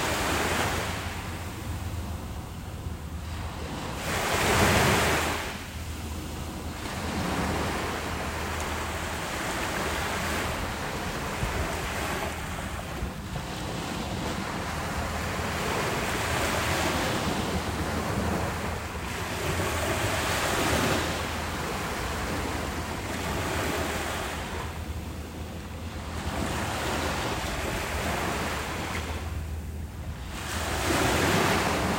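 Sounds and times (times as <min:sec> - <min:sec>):
ocean beach: 0:00.0 - 0:31.9.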